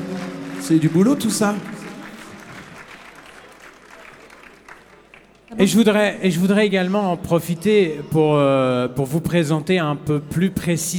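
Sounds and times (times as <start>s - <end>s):
audience applauding musicians after a concert: 0.0s - 6.0s
speech: 0.7s - 1.8s, 5.6s - 10.9s.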